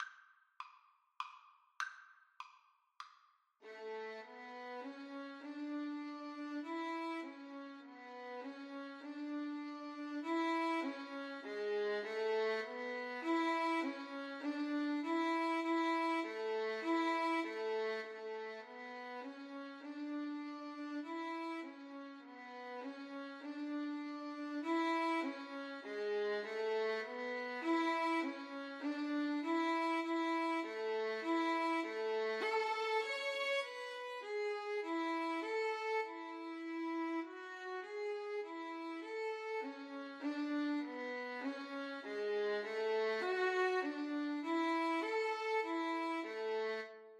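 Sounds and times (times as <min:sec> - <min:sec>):
violin duet: 0:03.6 - 0:47.0.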